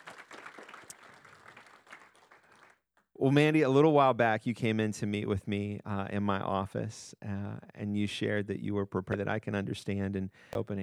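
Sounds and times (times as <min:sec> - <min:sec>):
audience clapping: 0:00.0 - 0:02.9
speech: 0:03.2 - 0:10.8.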